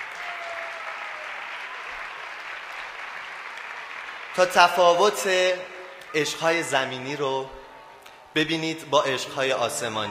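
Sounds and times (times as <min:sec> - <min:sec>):
audience applauding a live musical performance: 0:00.0 - 0:06.8
speech: 0:04.4 - 0:07.6, 0:08.4 - 0:10.0.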